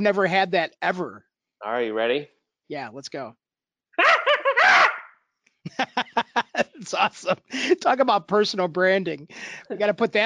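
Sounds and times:
speech: 0:00.0 - 0:03.4, 0:05.7 - 0:06.2, 0:06.8 - 0:10.2
laughter: 0:04.0 - 0:05.0, 0:05.7 - 0:07.9, 0:09.4 - 0:10.2
person imitating a chimpanzee scream: 0:04.0 - 0:05.1.

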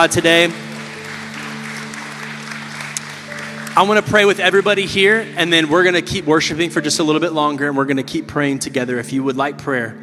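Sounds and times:
speech: 0:00.0 - 0:00.7, 0:03.8 - 0:10.0
crowd applause: 0:00.0 - 0:06.2
low musical drone: 0:00.0 - 0:10.0.

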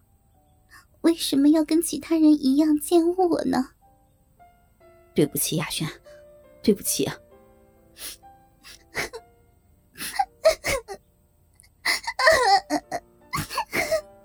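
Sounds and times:
speech: 0:01.0 - 0:03.8, 0:05.2 - 0:07.2, 0:08.0 - 0:08.2
girl crying and sobbing: 0:08.0 - 0:09.3, 0:10.0 - 0:11.0, 0:11.7 - 0:14.2.

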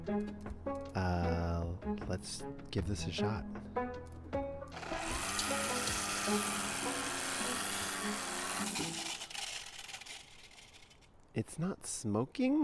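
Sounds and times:
speech: 0:00.0 - 0:04.2, 0:06.3 - 0:06.7, 0:11.4 - 0:12.6
electric trimmer cutting through tangled vines: 0:04.7 - 0:11.1.

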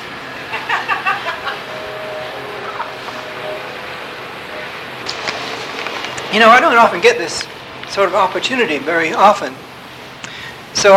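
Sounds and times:
train passing by: 0:00.0 - 0:10.0
laughter: 0:00.4 - 0:02.0
high squealing tones of passing train: 0:01.5 - 0:04.8
speech: 0:06.3 - 0:09.6.

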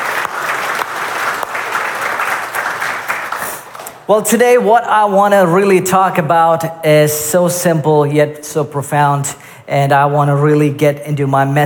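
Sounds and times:
church audience applauding: 0:00.0 - 0:03.9
speech: 0:04.1 - 0:11.6.

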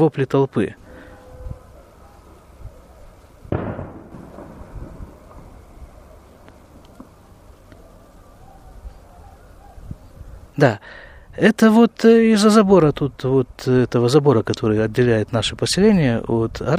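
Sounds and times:
speech: 0:00.0 - 0:00.8, 0:10.6 - 0:16.7
rubber-bullet weapon gunshot: 0:03.5 - 0:04.9.

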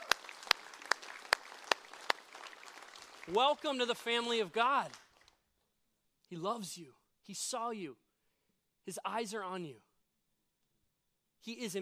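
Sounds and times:
audience clapping: 0:00.0 - 0:05.4
speech: 0:03.3 - 0:05.0, 0:06.3 - 0:08.0, 0:08.8 - 0:09.9, 0:11.4 - 0:11.7.

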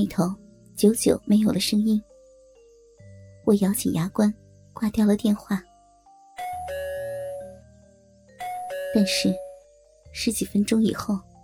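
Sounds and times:
speech: 0:00.0 - 0:02.1, 0:03.5 - 0:05.7, 0:09.0 - 0:09.4, 0:10.2 - 0:11.3
harsh doorbell ringing: 0:06.4 - 0:07.6, 0:08.4 - 0:09.7.

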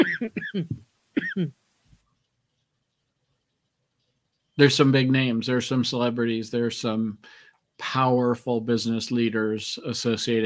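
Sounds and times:
person gagging and coughing: 0:00.0 - 0:01.5
speech: 0:00.2 - 0:00.8, 0:01.4 - 0:01.6, 0:04.6 - 0:10.4.

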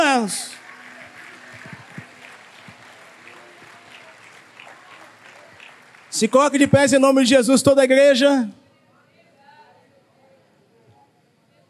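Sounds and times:
audience applauding: 0:00.0 - 0:07.5
speech: 0:00.2 - 0:00.6, 0:06.2 - 0:08.6.

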